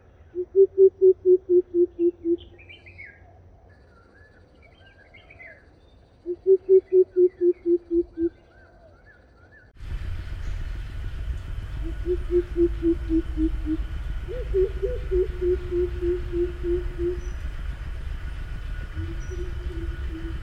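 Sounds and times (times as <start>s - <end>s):
Greater Coucal calling: 0.3s - 2.8s, 6.3s - 8.4s, 11.8s - 20.4s.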